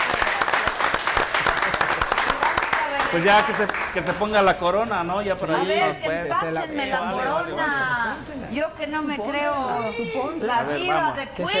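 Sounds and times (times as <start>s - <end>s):
big applause: 0.0s - 4.3s
speech: 3.1s - 11.5s.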